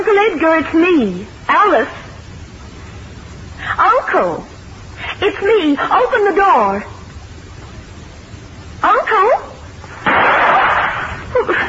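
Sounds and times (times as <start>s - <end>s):
speech: 0.2s - 2.0s, 3.6s - 4.5s, 5.2s - 7.0s, 8.8s - 9.4s
gunshot: 10.0s - 11.2s.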